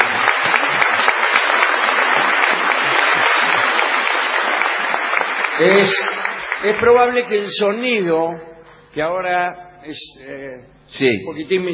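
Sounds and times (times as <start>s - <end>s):
audience applause: 0.0s - 7.1s
speech: 5.6s - 11.7s.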